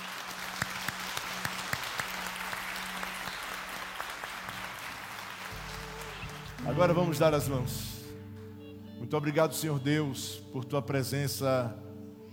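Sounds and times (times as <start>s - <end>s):
audience applause: 0.0s - 8.2s
speech: 6.7s - 8.0s, 9.1s - 11.9s.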